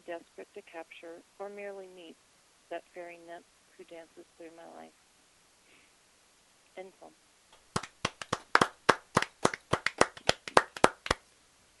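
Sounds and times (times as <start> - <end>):
speech: 0.1 - 5.0, 6.8 - 7.3
hands clapping: 7.5 - 11.2.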